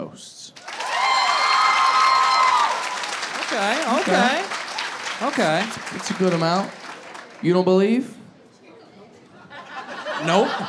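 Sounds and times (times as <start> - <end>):
speech: 0.2 - 0.4, 3.6 - 4.4, 5.2 - 6.8, 7.4 - 8.2, 10.2 - 10.6
audience applause: 0.6 - 7.6
high whoops and shouts: 0.7 - 3.1
laughter: 9.4 - 10.6.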